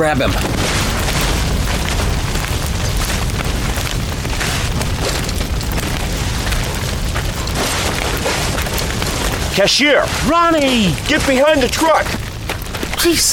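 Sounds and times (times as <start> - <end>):
speech: 0.0 - 0.8, 9.6 - 12.2, 13.0 - 13.3
fire crackling: 0.0 - 13.3
gas pumps exploding with roaring booms: 0.0 - 13.3.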